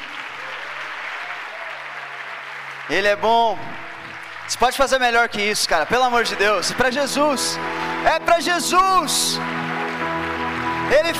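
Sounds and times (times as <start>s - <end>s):
audience applause: 0.0s - 11.1s
speech: 2.9s - 3.9s, 4.5s - 9.6s, 10.9s - 11.1s.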